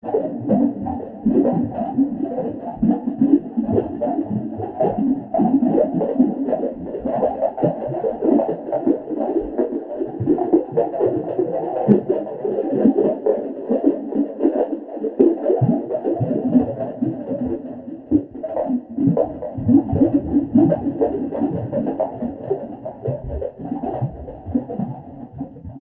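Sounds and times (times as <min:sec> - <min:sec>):
water: 0:00.0 - 0:25.7.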